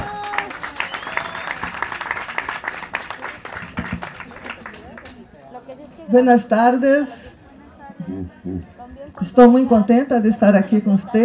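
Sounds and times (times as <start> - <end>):
warm audience applause: 0.0 - 5.4
speech: 6.1 - 7.2, 9.2 - 11.2.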